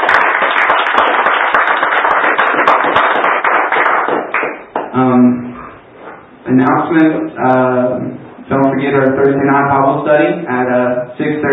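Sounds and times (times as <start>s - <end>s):
audience clapping hands: 0.0s - 5.0s
speech: 5.0s - 5.4s, 6.5s - 11.5s.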